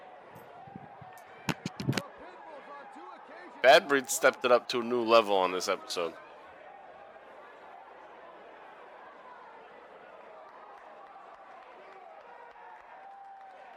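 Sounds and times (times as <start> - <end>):
wrestling crowd clapping: 0.0 - 2.3, 7.0 - 13.7
speech: 3.6 - 6.2.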